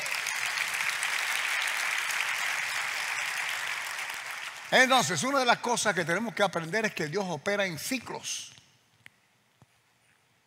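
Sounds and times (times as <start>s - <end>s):
audience applause: 0.0s - 5.9s
speech: 4.7s - 8.6s.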